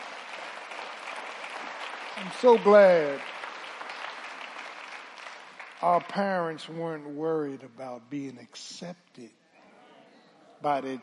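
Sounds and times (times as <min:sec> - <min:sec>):
audience hand clapping: 0:00.0 - 0:06.8
speech: 0:02.2 - 0:03.3, 0:05.8 - 0:09.4, 0:10.6 - 0:11.0.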